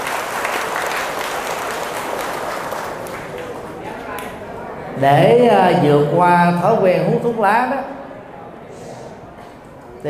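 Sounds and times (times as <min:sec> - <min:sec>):
audience applause: 0:00.0 - 0:04.4
speech: 0:05.0 - 0:08.0.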